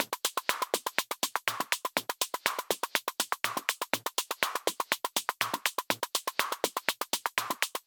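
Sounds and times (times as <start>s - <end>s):
122 BPM micro drums: 0.0s - 7.8s.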